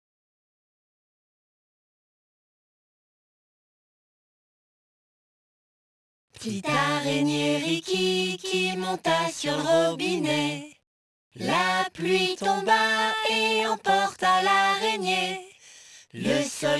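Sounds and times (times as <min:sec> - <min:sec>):
person singing a nursery song in French: 0:06.4 - 0:10.8, 0:11.4 - 0:16.7.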